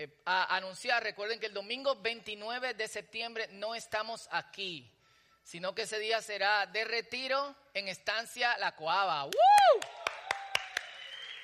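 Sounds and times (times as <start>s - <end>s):
speech: 0.0s - 9.8s
audience clapping in unison: 9.3s - 11.4s.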